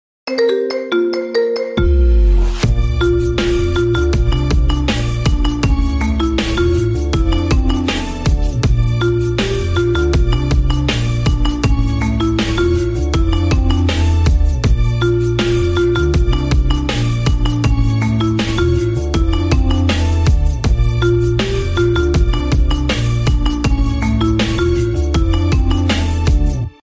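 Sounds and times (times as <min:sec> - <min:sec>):
marimba: 0:00.3 - 0:26.6.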